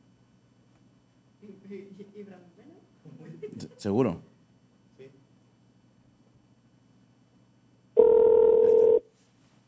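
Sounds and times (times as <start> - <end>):
speech: 1.7 - 4.3
laughter: 3.0 - 3.8
telephone ringback tone on a call: 8.0 - 9.0.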